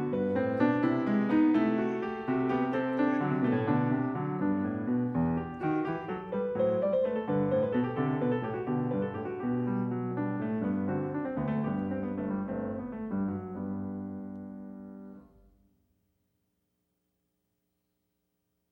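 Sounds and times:
classical canon for one keyboard: 0.0 - 13.8.

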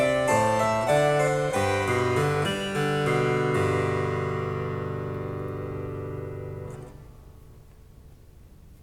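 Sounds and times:
harpsichord canon piece: 0.0 - 6.9.

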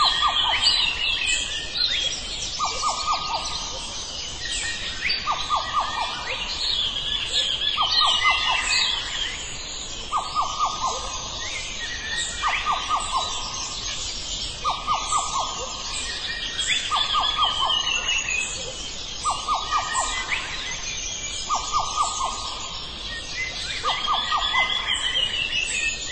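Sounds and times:
dawn chorus of birds in Madagascar: 0.0 - 26.1.

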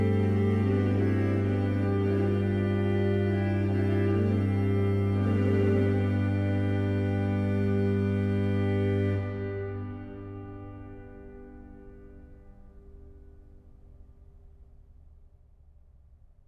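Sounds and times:
organ playing a hymn: 0.0 - 13.0.

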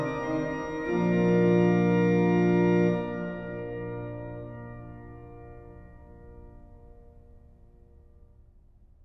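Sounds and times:
organ: 0.0 - 7.0.

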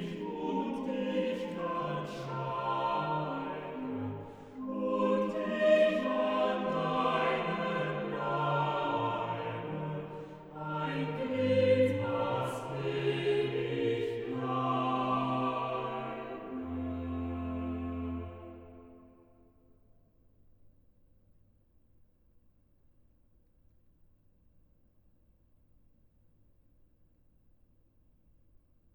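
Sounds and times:
organ chorale: 0.0 - 19.1.

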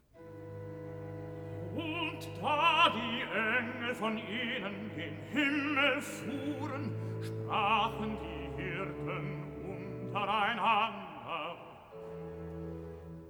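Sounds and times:
person singing recitative: 1.6 - 12.1.

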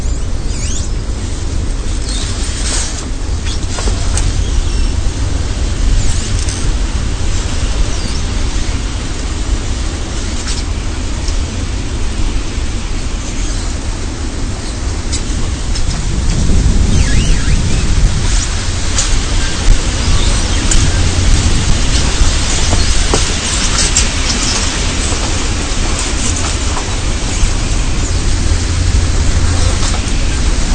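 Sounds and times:
wind in a cider forest on a windy day: 0.0 - 30.7.

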